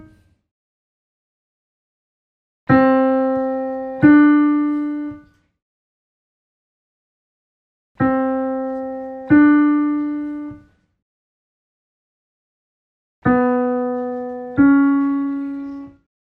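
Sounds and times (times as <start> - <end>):
piano: 0.0 - 0.4, 2.7 - 5.5, 8.0 - 10.9, 13.2 - 16.1.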